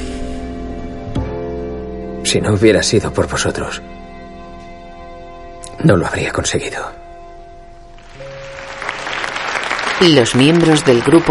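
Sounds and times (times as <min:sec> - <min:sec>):
speech: 0:02.3 - 0:04.0, 0:05.8 - 0:07.0, 0:10.0 - 0:11.2
ceremony audience including support group members applauding: 0:08.0 - 0:11.2.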